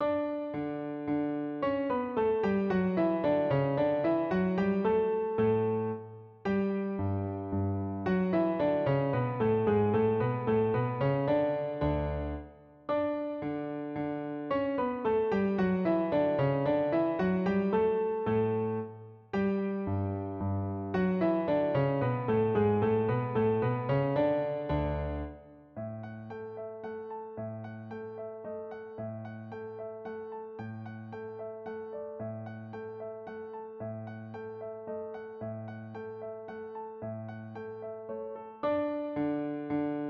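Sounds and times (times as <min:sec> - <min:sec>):
piano dance piece in D: 0:00.0 - 0:40.0.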